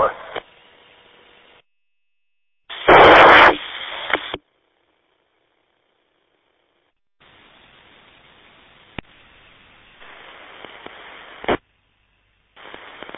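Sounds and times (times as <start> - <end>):
HF transceiver static noise: 0.0 - 4.4, 7.2 - 11.6, 12.6 - 13.1.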